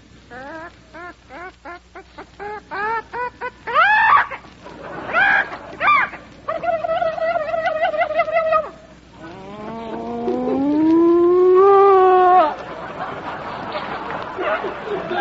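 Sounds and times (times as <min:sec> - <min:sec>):
laughter: 0:01.0 - 0:15.1
voice imitating barnyard animals with clucks and squawks: 0:05.2 - 0:12.6.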